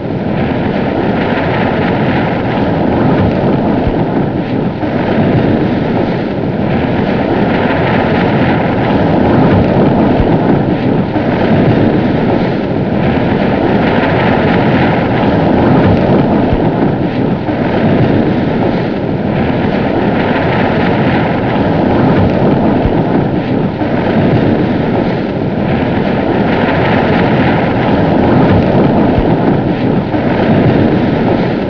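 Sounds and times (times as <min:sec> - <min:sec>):
wind: 0:00.0 - 0:31.6.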